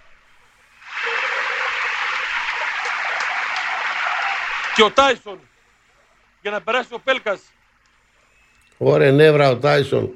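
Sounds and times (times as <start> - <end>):
large stadium crowd applauding substituted player: 0.8 - 5.1
speech: 4.8 - 5.5, 6.4 - 7.6, 8.8 - 10.1.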